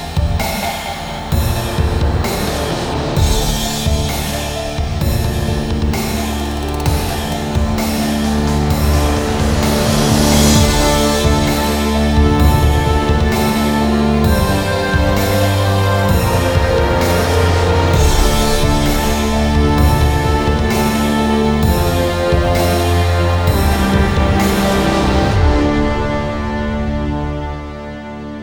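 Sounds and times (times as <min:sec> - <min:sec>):
cinematic trailer music: 0:00.0 - 0:28.4.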